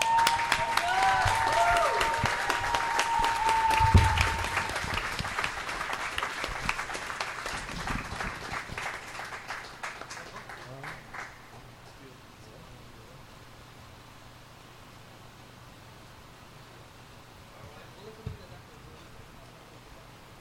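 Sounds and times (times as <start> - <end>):
whistles and cheers: 0.0 - 5.1
audience applause: 0.0 - 11.6.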